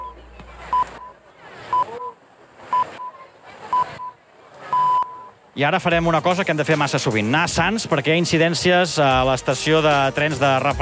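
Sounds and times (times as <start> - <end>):
radio hourly time signal pips: 0.7 - 5.4
speech: 5.6 - 10.8.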